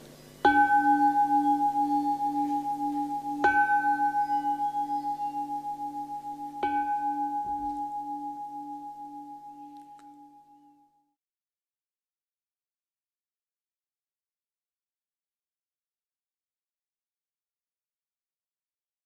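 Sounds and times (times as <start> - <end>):
temple bell ringing: 0.4 - 10.8.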